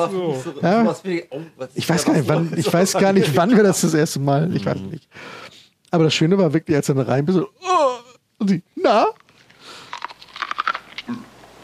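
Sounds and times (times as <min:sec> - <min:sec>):
speech: 0:00.0 - 0:07.7, 0:08.4 - 0:09.2
crunching bites of crisp raw food: 0:09.1 - 0:11.6
person chewing: 0:09.2 - 0:11.6.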